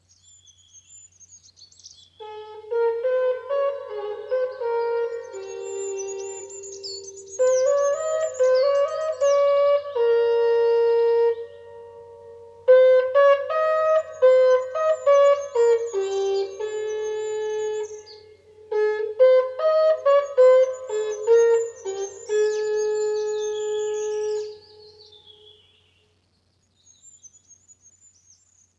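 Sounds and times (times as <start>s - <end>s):
horn melody: 2.2s - 25.5s.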